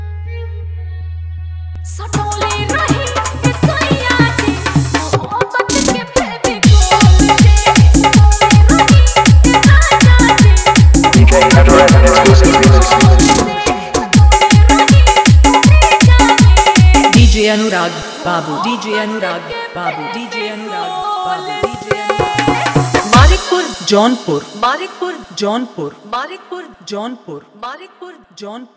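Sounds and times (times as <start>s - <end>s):
dholki bass dance remix: 1.9s - 18.2s, 21.9s - 26.4s.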